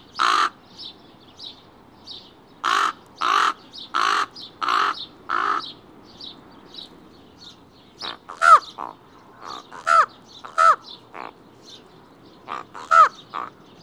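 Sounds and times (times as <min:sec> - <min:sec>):
common raven calling: 0:00.1 - 0:00.6, 0:02.6 - 0:05.8, 0:08.0 - 0:11.4, 0:12.5 - 0:13.6.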